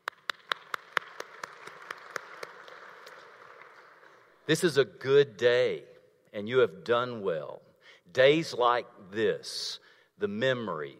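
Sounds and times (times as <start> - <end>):
people clapping: 0.0 - 4.4
speech: 4.5 - 10.9.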